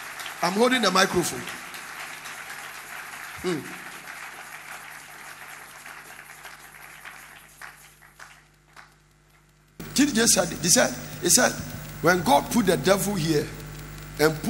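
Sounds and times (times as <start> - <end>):
audience clapping: 0.0 - 14.4
speech: 0.4 - 1.6, 3.4 - 3.8, 10.0 - 13.6, 14.2 - 14.4.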